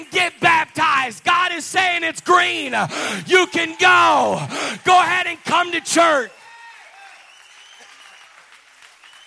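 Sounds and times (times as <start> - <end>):
speech: 1.1 - 6.4
crowd audience clapping hands: 4.9 - 9.2.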